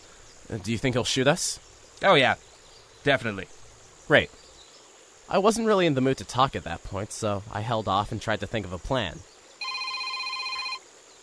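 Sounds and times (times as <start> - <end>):
speech: 0.5 - 4.4, 5.3 - 9.3
mobile phone ringing: 9.6 - 10.8.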